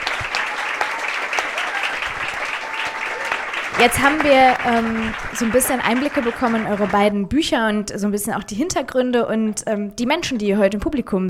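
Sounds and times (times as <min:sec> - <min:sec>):
audience applause: 0:00.0 - 0:07.1
speech: 0:03.8 - 0:11.2.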